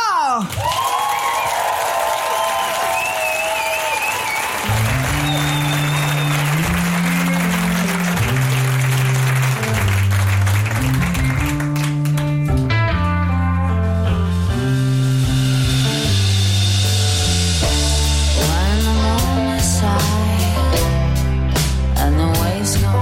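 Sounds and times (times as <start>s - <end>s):
audience clapping and cheering for a musician: 0.0s - 12.7s
music: 4.2s - 22.9s.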